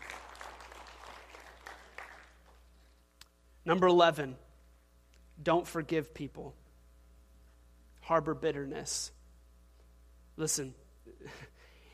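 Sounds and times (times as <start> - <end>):
audience applause: 0.0 - 2.6
speech: 3.6 - 4.4, 5.4 - 6.6, 8.1 - 9.2, 10.4 - 11.5.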